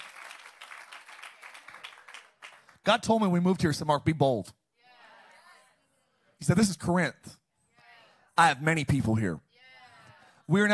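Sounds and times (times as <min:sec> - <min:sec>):
audience clapping: 0:00.0 - 0:03.4
speech: 0:02.8 - 0:04.6, 0:06.4 - 0:07.4, 0:08.4 - 0:09.4, 0:10.5 - 0:10.7.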